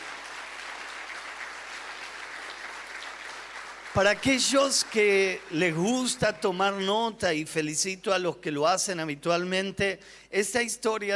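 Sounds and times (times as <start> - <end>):
audience applause: 0.0 - 6.2
speech: 4.0 - 11.1.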